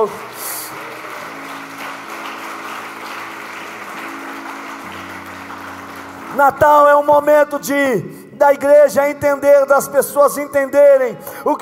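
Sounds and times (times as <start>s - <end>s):
speech: 0.0s - 0.4s, 6.3s - 11.6s
audience clapping: 0.0s - 7.4s.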